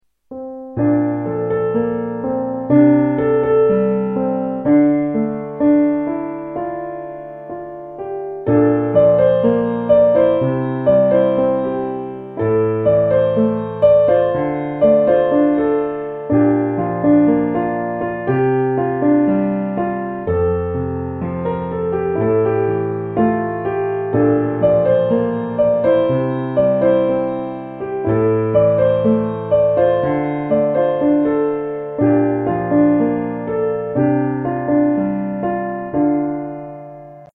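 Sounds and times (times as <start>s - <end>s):
instrumental piano: 0.0s - 37.3s.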